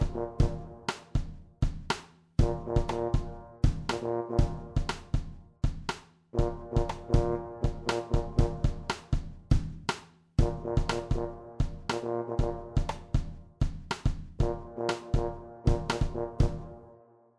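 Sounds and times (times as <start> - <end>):
trombone: 0.0 - 1.4, 2.4 - 5.4, 6.3 - 9.1, 10.4 - 13.4, 14.4 - 17.2
drum kit: 0.0 - 16.8.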